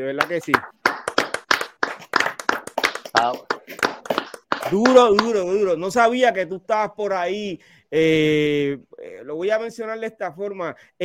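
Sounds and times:
speech: 0:00.0 - 0:00.8, 0:03.2 - 0:03.8, 0:04.7 - 0:11.0
audience applause: 0:00.2 - 0:05.3.

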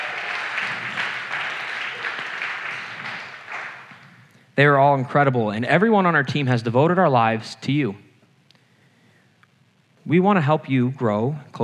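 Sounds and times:
round of applause: 0:00.0 - 0:04.2
speech: 0:04.6 - 0:08.0, 0:10.1 - 0:11.6.

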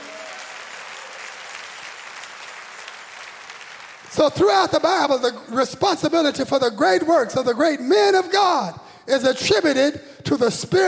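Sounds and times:
audience clapping: 0:00.0 - 0:05.3
speech: 0:04.1 - 0:10.8.

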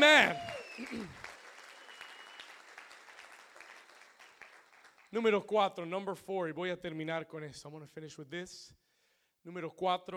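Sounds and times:
speech: 0:00.0 - 0:01.2, 0:05.1 - 0:08.8, 0:09.4 - 0:10.1
loud applause: 0:00.0 - 0:05.1.

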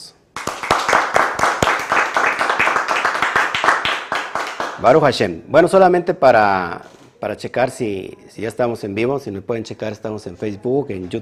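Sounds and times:
small group applauding: 0:00.4 - 0:05.0
speech: 0:04.8 - 0:11.2.

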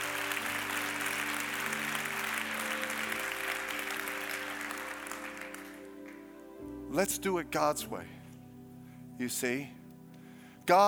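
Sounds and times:
audience clapping: 0:00.0 - 0:06.5
speech: 0:06.9 - 0:08.2, 0:09.2 - 0:09.8, 0:10.7 - 0:10.8.

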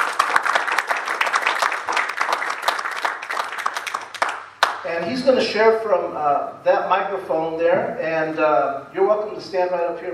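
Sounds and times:
church congregation clapping as a speaker comes up: 0:00.0 - 0:05.0
speech: 0:05.1 - 0:10.1.

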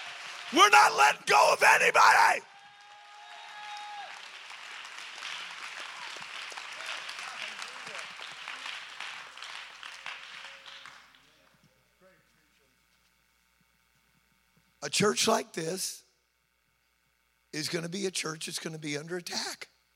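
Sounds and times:
audience clapping and cheering: 0:00.0 - 0:11.4
speech: 0:00.5 - 0:02.5, 0:14.8 - 0:16.0, 0:17.5 - 0:19.7.

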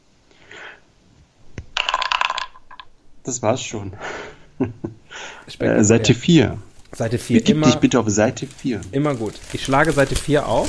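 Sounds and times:
dice rolling and clattering: 0:01.7 - 0:02.9
speech: 0:03.2 - 0:10.6
laughter: 0:04.0 - 0:06.4, 0:07.0 - 0:08.4.

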